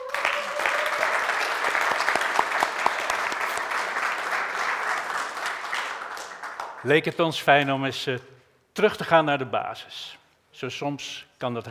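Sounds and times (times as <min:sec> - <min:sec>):
audience clapping: 0:00.0 - 0:08.2
speech: 0:06.8 - 0:11.7.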